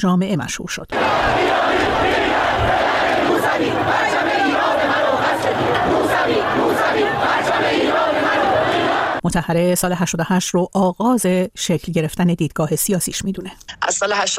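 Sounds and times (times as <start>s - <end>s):
speech: 0.0s - 8.0s, 9.2s - 14.3s
protest crowd chanting and shouting: 0.9s - 9.2s.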